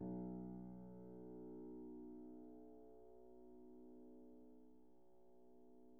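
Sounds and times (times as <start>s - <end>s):
Steinway piano played pianissimo: 0.0s - 4.4s.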